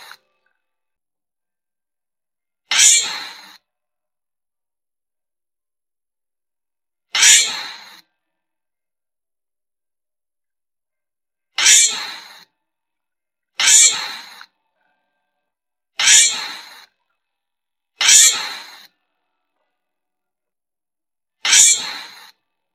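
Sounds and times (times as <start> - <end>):
giant flying squirrel screaming: 2.7 - 3.6, 11.6 - 12.4, 13.6 - 14.4, 16.0 - 16.8, 18.0 - 18.8, 21.4 - 22.3.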